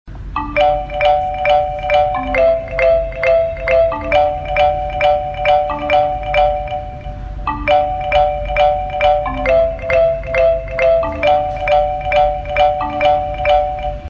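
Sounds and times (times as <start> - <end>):
Bphone music box ringtone: 0.2 - 14.0.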